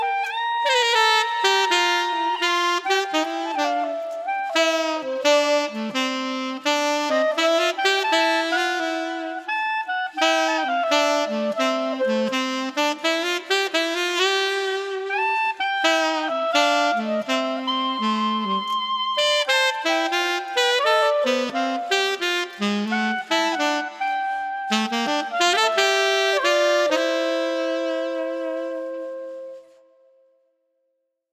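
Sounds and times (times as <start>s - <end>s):
alto clarinet in a street: 0.0s - 30.3s.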